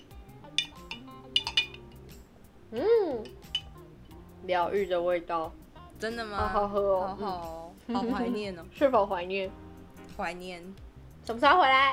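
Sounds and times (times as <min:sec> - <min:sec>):
spoon clinking against a glass stirring milk, honey and grass jelly: 0:00.4 - 0:02.1, 0:03.2 - 0:03.9
speech: 0:02.7 - 0:03.4, 0:04.5 - 0:09.6, 0:10.2 - 0:11.9.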